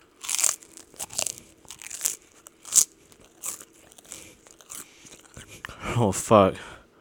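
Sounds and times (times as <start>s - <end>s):
crunching fried pork chips: 0.0s - 5.6s
speech: 6.0s - 6.7s.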